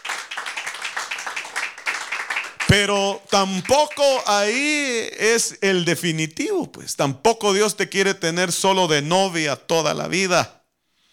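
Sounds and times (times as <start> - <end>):
audience clapping hands: 0.0 - 4.6
speech: 2.7 - 10.6.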